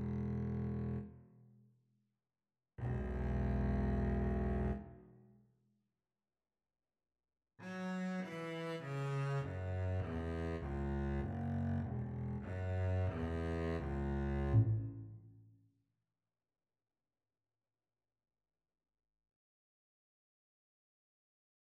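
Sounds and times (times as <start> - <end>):
double bass duet: 0.0 - 1.0, 2.8 - 4.8, 8.1 - 15.1.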